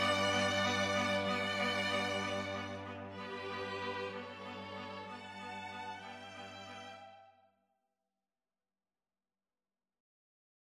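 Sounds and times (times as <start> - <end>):
string quartet: 0.0 - 7.2.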